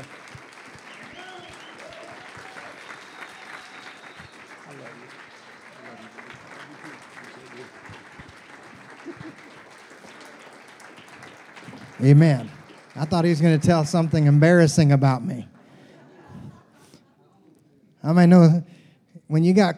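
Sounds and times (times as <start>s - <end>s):
church congregation applauding to welcome a pastor onto the stage: 0.0s - 15.4s
laughter: 5.8s - 10.6s, 15.5s - 17.6s
speech: 12.0s - 15.5s, 18.1s - 18.7s, 19.3s - 19.7s.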